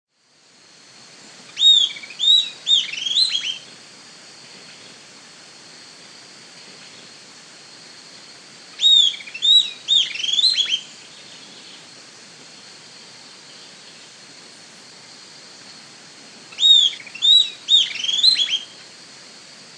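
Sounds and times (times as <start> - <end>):
Southern antpipit Corythopis delalandi calling: 1.5 - 3.6, 8.8 - 11.9, 16.5 - 18.8.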